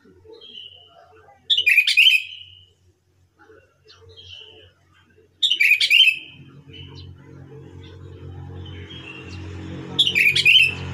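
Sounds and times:
sooty-headed bulbul whistled song: 0.5s - 2.8s, 5.4s - 6.4s, 10.0s - 10.8s.

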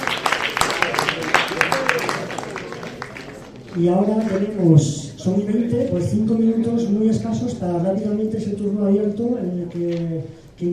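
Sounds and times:
audience applause: 0.0s - 3.8s
faint murmur of voices: 0.0s - 10.7s
speech: 3.8s - 10.7s.

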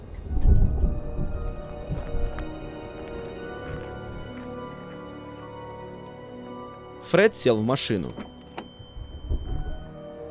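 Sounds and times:
thunder rumbling in a thunderstorm: 0.0s - 4.4s, 8.8s - 10.0s
speech: 7.1s - 8.3s.

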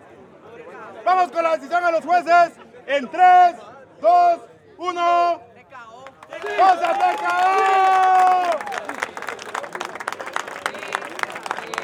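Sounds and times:
speech: 1.1s - 5.5s, 6.4s - 8.7s
crowd cheering at a competition in Guatemala City: 6.1s - 11.8s.

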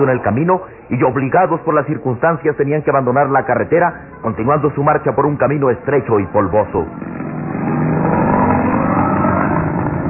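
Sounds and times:
speech: 0.0s - 7.2s
modern sports car engine driving on a dusty road: 6.9s - 10.0s.

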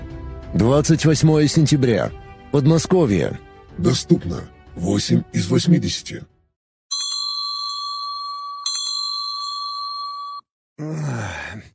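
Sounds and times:
speech: 0.5s - 6.3s, 10.8s - 11.7s
alarm clock ringing: 6.9s - 10.4s.

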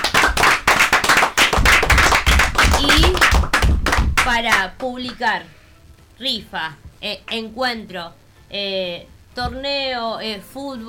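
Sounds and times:
small group clapping for a community FM radio station's first anniversary: 0.0s - 5.3s
speech: 4.4s - 5.6s, 6.2s - 10.8s.

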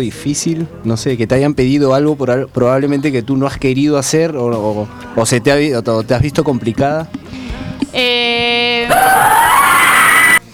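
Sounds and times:
speech: 0.0s - 9.5s
person screaming loudly in the room: 8.9s - 10.4s.

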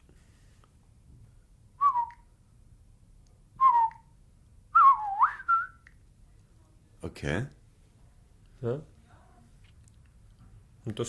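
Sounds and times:
whistled imitation of bird language: 1.8s - 2.2s, 3.6s - 4.1s, 4.8s - 5.8s
speech: 7.1s - 7.6s, 8.6s - 8.9s, 10.8s - 11.0s.

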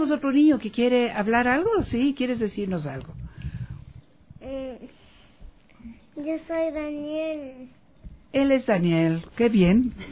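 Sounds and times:
speech: 0.0s - 3.2s, 4.4s - 5.0s, 5.8s - 10.1s
child's drawn-out sing-song vocal sound: 6.2s - 7.8s.

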